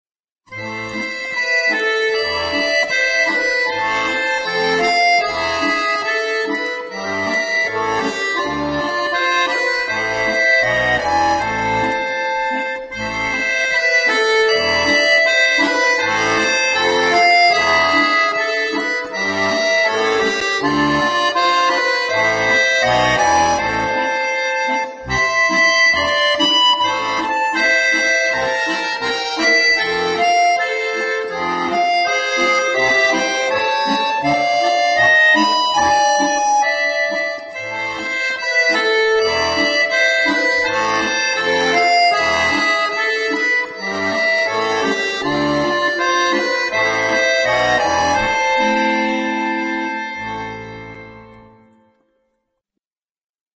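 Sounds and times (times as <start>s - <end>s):
sad song on bayan accordion: 0.5s - 52.1s.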